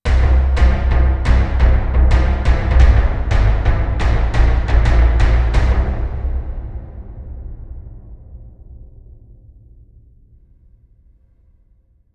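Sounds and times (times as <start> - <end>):
Roland Gaia 2 synthesizer drums: 0.1 - 7.6.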